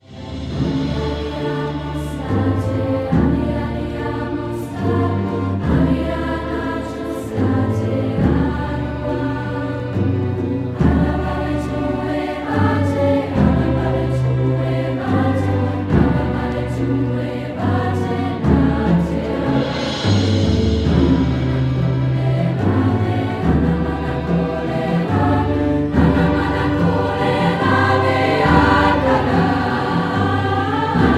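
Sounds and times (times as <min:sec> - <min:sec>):
large choir singing: 0:00.0 - 0:31.1.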